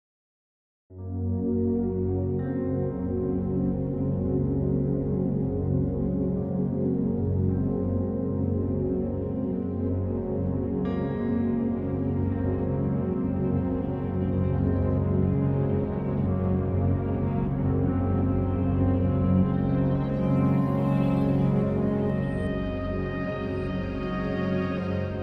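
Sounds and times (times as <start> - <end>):
piano: 1.0 - 25.2.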